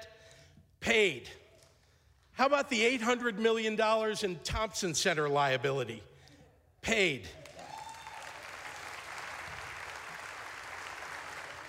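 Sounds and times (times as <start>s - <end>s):
speech: 0.9s - 1.4s, 2.4s - 6.1s, 6.8s - 7.4s
audience clapping during a speech: 7.4s - 11.6s.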